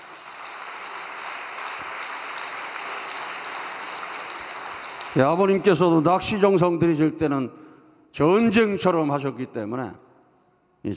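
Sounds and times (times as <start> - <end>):
church congregation applause at an all-night devotion in Yeosu: 0.0 - 6.2
speech: 5.2 - 7.6, 8.2 - 10.0.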